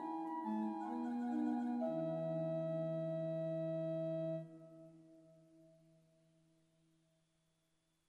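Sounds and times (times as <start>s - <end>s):
organ post-communion piece: 0.0s - 4.5s.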